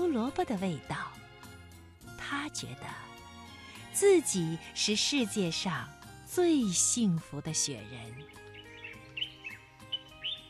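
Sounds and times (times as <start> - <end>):
speech: 0.1 - 1.2, 2.4 - 3.1, 4.0 - 8.5
small bird chirping: 8.1 - 10.4.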